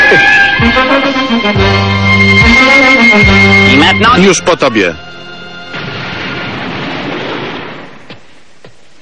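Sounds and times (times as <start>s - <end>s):
speech: 0.1s - 0.3s, 1.0s - 5.2s
loud explosion blast: 5.7s - 8.1s.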